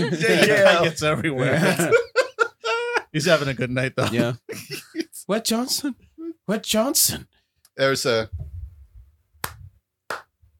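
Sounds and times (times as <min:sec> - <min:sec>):
speech: 0:00.0 - 0:02.1, 0:03.1 - 0:08.5
laughter: 0:00.0 - 0:05.2
hand claps: 0:09.4 - 0:10.4.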